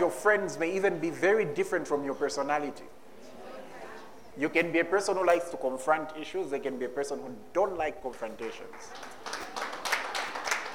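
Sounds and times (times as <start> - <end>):
speech: 0.0 - 3.1, 4.4 - 9.4
audience clapping: 8.6 - 10.7.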